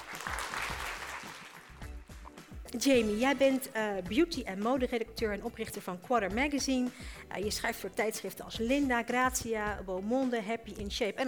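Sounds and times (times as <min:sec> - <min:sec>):
audience applause at an evening talk event: 0:00.0 - 0:01.8
speech: 0:02.7 - 0:11.2.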